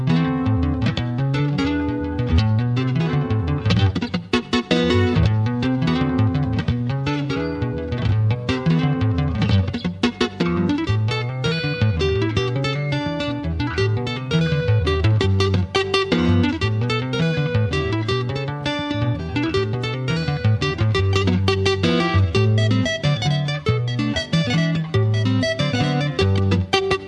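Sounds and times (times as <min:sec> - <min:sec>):
Brazilian rhumba music: 0:00.1 - 0:27.0.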